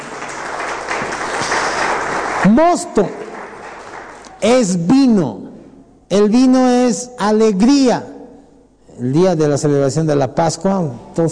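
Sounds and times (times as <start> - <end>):
audience applauding: 0.0 - 4.7
speech: 2.4 - 3.2, 4.4 - 5.5, 6.1 - 8.2, 9.0 - 11.3.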